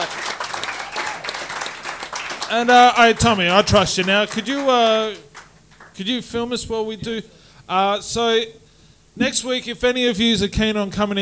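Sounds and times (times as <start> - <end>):
audience applause: 0.0 - 6.0
speech: 2.5 - 5.2, 6.0 - 8.6, 9.2 - 11.2.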